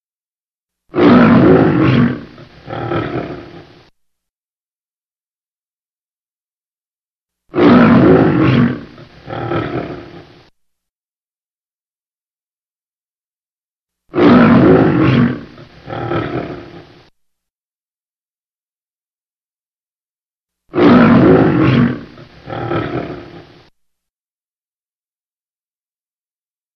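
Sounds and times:
lion roaring: 0.9 - 3.9, 7.5 - 10.5, 14.1 - 17.1, 20.7 - 23.7.

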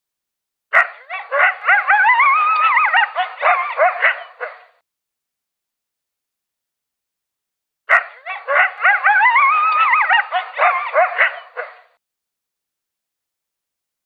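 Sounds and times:
coyote yipping and howling: 0.8 - 4.6, 8.0 - 11.8.

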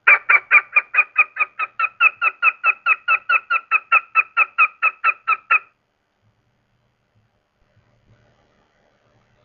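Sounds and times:
goshawk calling: 0.0 - 5.7.

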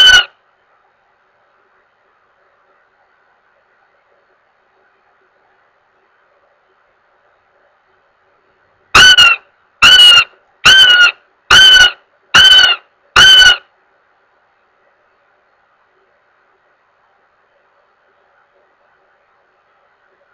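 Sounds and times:
goshawk giving harsh level wailing notes: 0.0 - 0.4, 9.0 - 13.6.

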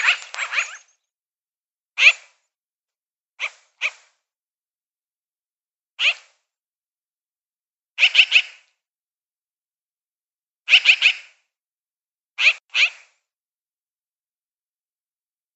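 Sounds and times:
magpie giving dry rasping calls: 0.0 - 0.9, 2.0 - 2.3, 6.0 - 6.3, 8.0 - 8.6, 10.7 - 11.4, 12.4 - 13.1.

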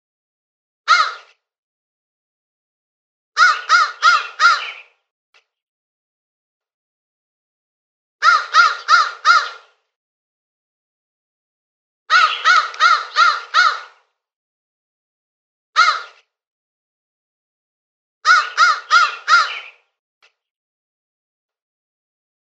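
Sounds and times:
crow uttering rasping caws: 0.9 - 1.3, 3.4 - 4.9, 8.2 - 9.8, 12.1 - 14.1, 15.8 - 16.2, 18.2 - 19.8.

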